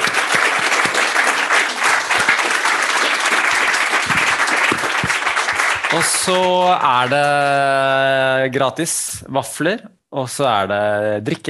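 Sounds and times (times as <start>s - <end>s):
audience applause: 0.0s - 7.8s
speech: 6.0s - 11.4s.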